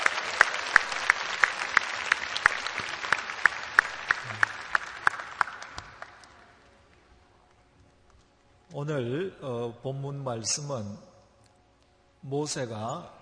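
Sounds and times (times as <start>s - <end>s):
audience applauding: 0.0s - 6.7s
speech: 8.8s - 11.1s, 12.3s - 13.2s.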